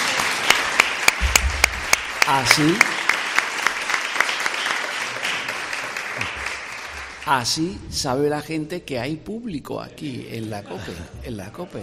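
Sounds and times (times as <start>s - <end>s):
audience applause: 0.0s - 7.6s
speech: 2.3s - 2.9s, 7.2s - 11.8s.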